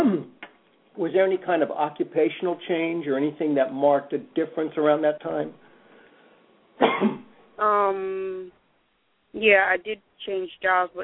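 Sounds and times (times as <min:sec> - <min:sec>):
harsh cough: 0:00.0 - 0:00.3, 0:06.8 - 0:07.3
throat clearing: 0:00.0 - 0:00.4, 0:06.8 - 0:07.3
speech: 0:01.0 - 0:05.6, 0:07.6 - 0:08.6, 0:09.3 - 0:11.0.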